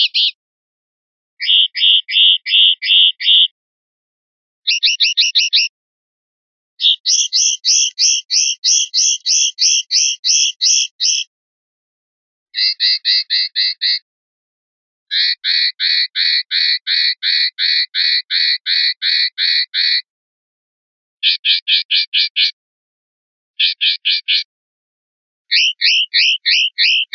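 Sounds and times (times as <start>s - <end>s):
linnet calling: 0.0s - 0.4s, 1.4s - 3.6s, 4.6s - 5.7s, 6.8s - 11.3s, 12.6s - 14.0s, 15.1s - 20.1s, 21.2s - 22.5s, 23.6s - 24.5s, 25.5s - 27.1s.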